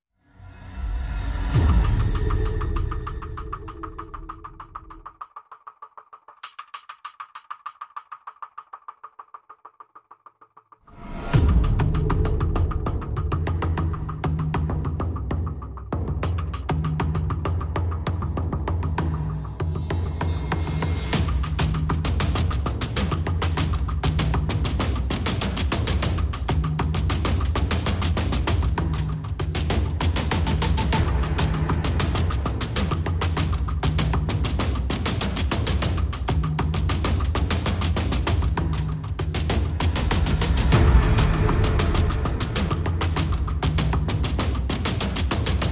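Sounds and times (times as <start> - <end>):
drums: 0.6 - 45.6.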